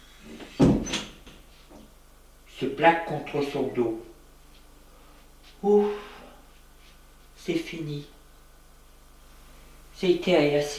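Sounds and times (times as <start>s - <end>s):
door swinging shut: 0.4s - 1.2s
speech: 2.6s - 4.1s, 5.6s - 6.1s, 7.4s - 8.2s, 10.0s - 10.7s.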